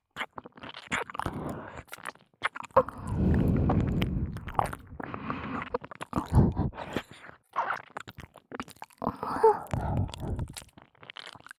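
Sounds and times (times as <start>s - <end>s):
ear licking sounds: 0.2s - 11.5s
sticky sucking sounds: 2.8s - 7.0s, 9.1s - 10.6s.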